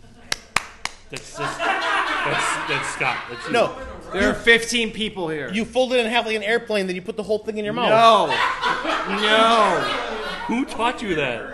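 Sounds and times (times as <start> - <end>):
hand claps from a small audience at a live talk: 0.3 - 1.4
speech: 1.1 - 11.5
laughter: 1.2 - 4.5, 7.7 - 11.5.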